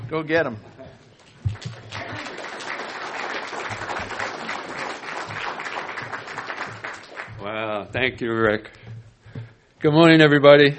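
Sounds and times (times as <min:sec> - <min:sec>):
speech: 0:00.1 - 0:00.7, 0:07.4 - 0:09.0, 0:09.8 - 0:10.7
audience applause: 0:01.5 - 0:07.7.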